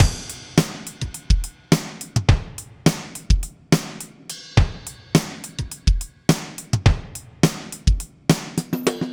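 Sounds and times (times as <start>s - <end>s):
drum loops: 0.0s - 9.1s.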